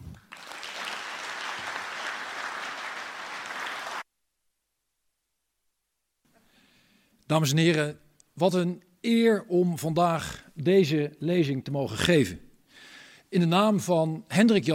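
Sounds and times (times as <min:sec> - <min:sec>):
audience applause: 0:00.0 - 0:04.0
speech: 0:07.3 - 0:12.4, 0:13.3 - 0:14.7.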